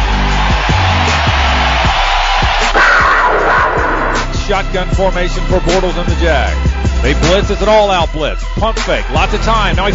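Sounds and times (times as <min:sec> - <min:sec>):
stadium crowd giving standing ovation: 0:00.0 - 0:04.4
speech: 0:04.5 - 0:09.9.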